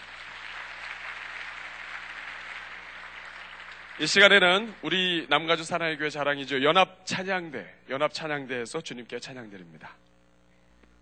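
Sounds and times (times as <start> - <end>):
audience applause: 0.0 - 5.1
speech: 4.0 - 10.1.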